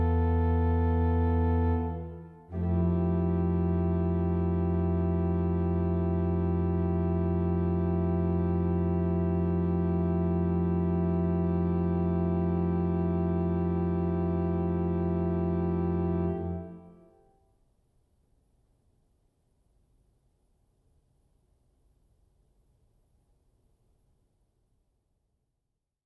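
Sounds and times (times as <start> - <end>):
organist playing a hymn: 0.0 - 17.1.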